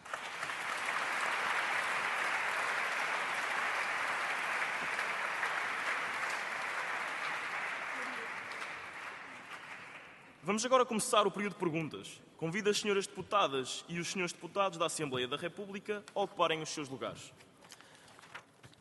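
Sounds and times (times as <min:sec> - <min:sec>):
sustained applause from an audience: 0:00.0 - 0:10.4
speech: 0:10.5 - 0:17.5.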